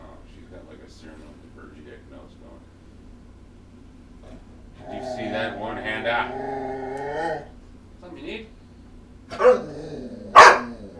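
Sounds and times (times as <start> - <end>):
dog growling and snarling: 4.2 - 7.6, 9.3 - 10.9.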